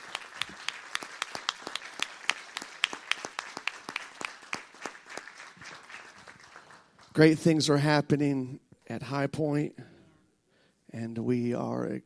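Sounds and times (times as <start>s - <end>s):
audience clapping: 0.0s - 7.5s
speech: 7.2s - 9.8s, 10.9s - 12.0s.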